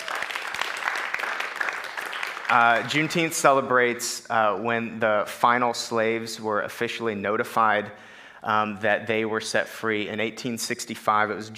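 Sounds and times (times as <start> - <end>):
audience clapping: 0.0 - 3.3
speech: 2.5 - 11.5.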